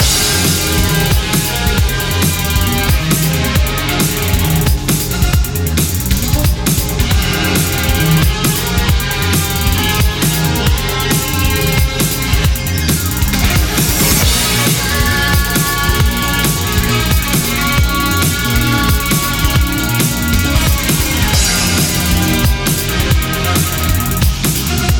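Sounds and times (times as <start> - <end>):
music loop: 0.0 - 24.9.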